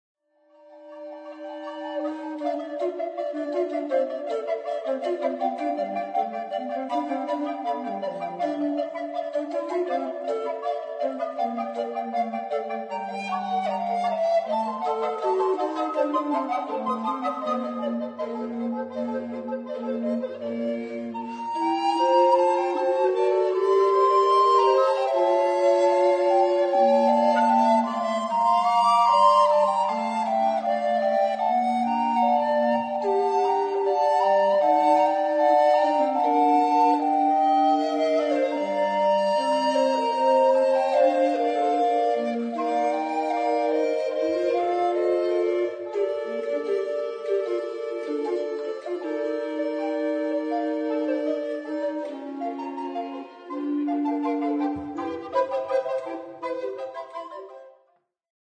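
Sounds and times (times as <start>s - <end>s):
fugue: 0.6s - 57.8s.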